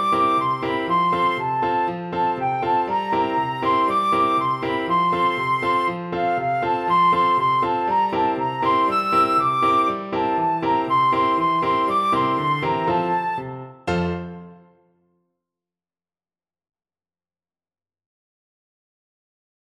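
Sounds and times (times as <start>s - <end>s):
flute: 0.0s - 14.7s.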